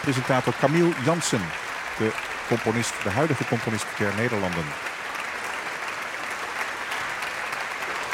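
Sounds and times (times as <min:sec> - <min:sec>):
speech: 0:00.0 - 0:04.9
audience applause: 0:00.0 - 0:08.1.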